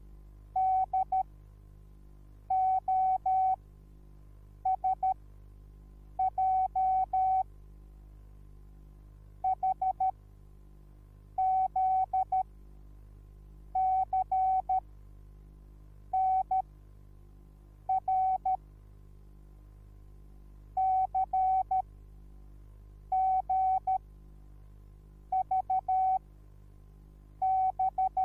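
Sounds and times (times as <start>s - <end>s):
morse code beeps: 0.6s - 1.2s, 2.5s - 3.6s, 4.7s - 5.2s, 6.2s - 7.4s, 11.4s - 12.4s, 13.8s - 14.8s, 16.2s - 16.6s, 17.9s - 18.6s, 20.8s - 21.8s, 23.1s - 24.0s, 25.4s - 26.2s, 27.4s - 28.2s.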